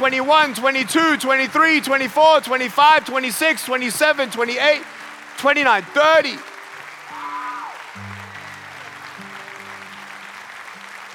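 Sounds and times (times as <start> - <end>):
speech: 0.0 - 6.5
audience applause: 0.0 - 11.1.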